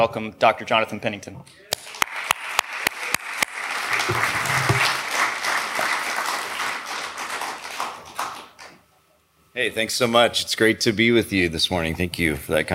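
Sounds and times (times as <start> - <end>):
speech: 0.0 - 1.8, 9.6 - 12.7
audience applause: 1.8 - 8.8.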